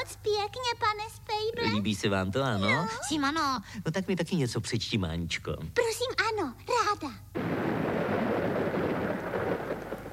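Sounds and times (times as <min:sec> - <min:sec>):
speech: 0:00.2 - 0:07.3
rain: 0:07.3 - 0:10.1
thunderstorm: 0:07.4 - 0:10.1.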